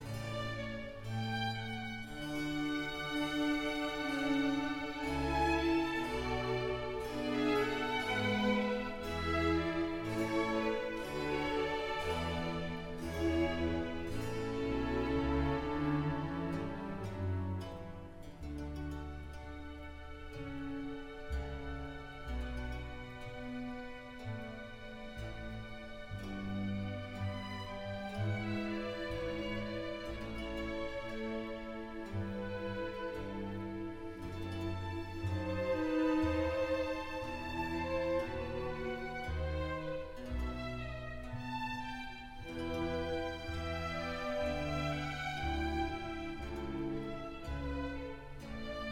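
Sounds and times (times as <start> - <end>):
orchestral air in D major: 0.0 - 48.8.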